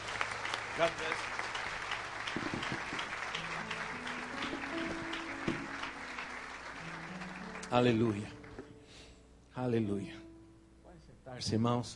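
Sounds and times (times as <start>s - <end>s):
applause: 0.0s - 8.7s
speech: 0.8s - 1.5s, 7.7s - 8.4s, 9.6s - 10.2s, 11.4s - 11.9s.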